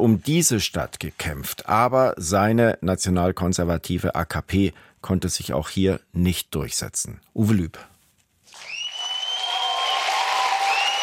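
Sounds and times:
speech: 0.0 - 7.9
crowd cheering and applauding at election celebration: 8.5 - 11.0.

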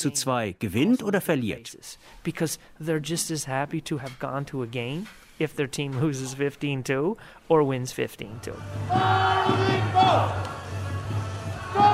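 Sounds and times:
speech: 0.0 - 10.6
baseball stadium crowd singing chants: 8.8 - 11.9.

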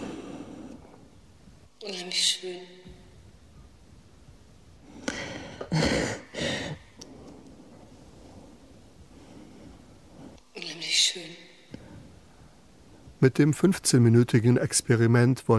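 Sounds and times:
young woman breathing: 0.0 - 1.2, 4.8 - 10.5, 11.7 - 13.2
speech: 1.8 - 3.0, 13.2 - 15.5.

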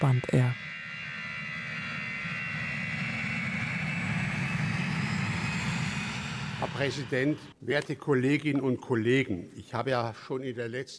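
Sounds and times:
speech: 0.0 - 0.7, 6.8 - 10.9
airplane engines droning in flight on a cold winter afternoon to Berlin: 0.0 - 7.6.

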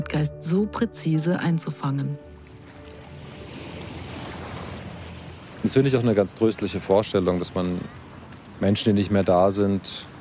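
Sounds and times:
speech: 0.0 - 2.3, 5.6 - 8.0, 8.6 - 10.1
wind and water rushing on the Wannsee lake: 2.2 - 10.1.

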